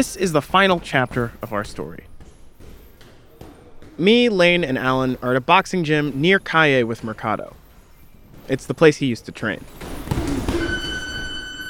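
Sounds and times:
speech: 0.0 - 2.1, 4.0 - 7.6, 8.5 - 9.9
boxing gym three-minute round timer buzzer: 10.5 - 11.6.

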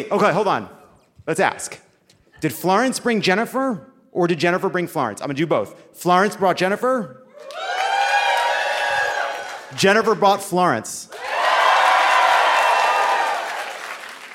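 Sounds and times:
speech: 0.0 - 1.8, 2.4 - 7.7, 9.7 - 11.2
crowd cheering and clapping: 7.3 - 10.0, 11.1 - 14.3.

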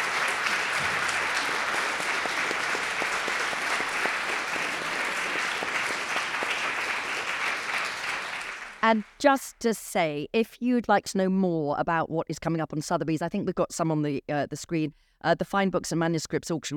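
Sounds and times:
audience applauding: 0.0 - 9.2
speech: 8.9 - 16.7.

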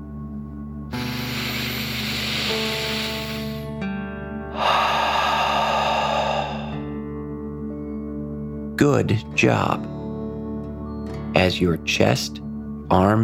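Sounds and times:
soft tonal music: 0.0 - 13.2
deep breath in and out like a dragon breathing fire: 0.9 - 3.8, 4.5 - 7.2
speech: 8.8 - 10.0, 11.4 - 13.2.

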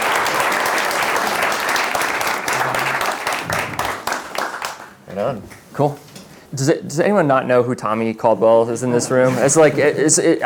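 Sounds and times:
audience applause: 0.0 - 5.0
speech: 5.2 - 10.4.

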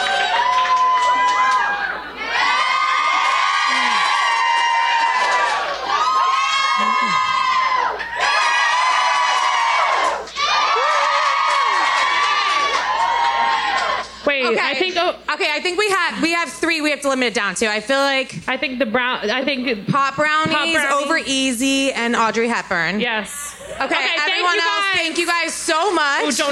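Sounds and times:
audience cheering: 0.0 - 14.2
speech: 14.5 - 26.5.

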